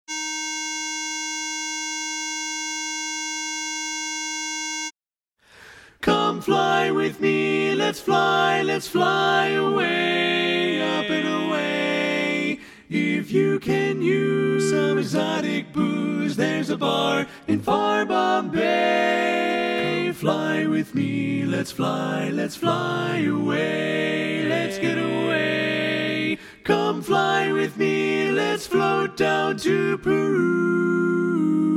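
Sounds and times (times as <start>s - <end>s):
tenor singing: 6.0s - 31.7s.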